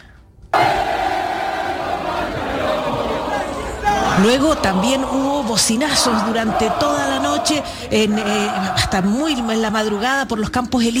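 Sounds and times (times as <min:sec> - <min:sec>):
large street crowd singing a national anthem: 0:00.6 - 0:10.2
speech: 0:04.2 - 0:10.9.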